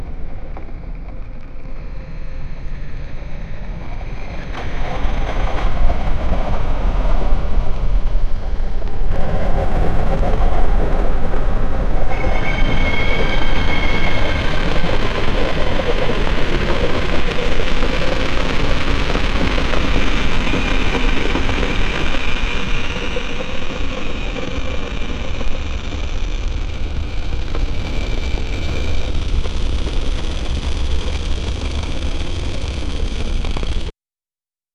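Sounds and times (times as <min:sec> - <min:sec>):
ambience in the ruins of Pripyat Chernobyl: 0:00.0 - 0:33.9.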